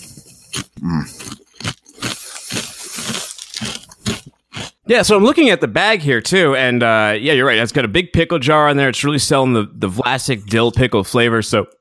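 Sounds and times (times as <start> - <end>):
crunch of eating a potato chip: 0.0 - 4.9
speech: 0.8 - 1.4, 4.9 - 11.8.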